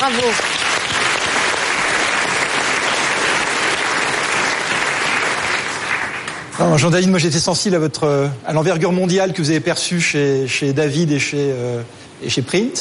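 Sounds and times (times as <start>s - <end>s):
speech: 0.0s - 0.7s, 6.6s - 12.7s
audience applause for the candidates: 0.0s - 6.5s.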